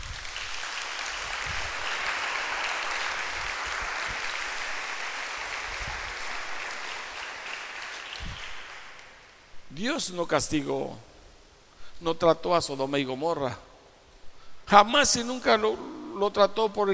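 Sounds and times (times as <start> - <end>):
applause: 0.0 - 9.4
speech: 9.8 - 11.1, 12.0 - 13.7, 14.7 - 16.9.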